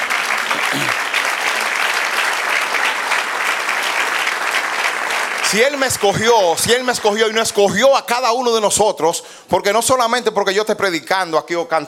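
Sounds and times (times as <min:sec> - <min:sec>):
audience applauding: 0:00.0 - 0:07.9
speech: 0:05.5 - 0:11.8.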